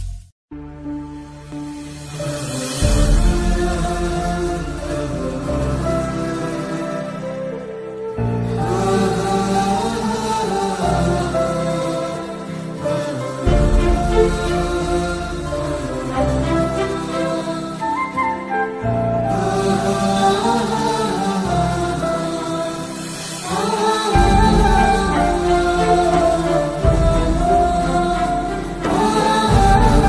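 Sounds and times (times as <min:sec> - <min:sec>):
sad background music: 0:00.5 - 0:30.0.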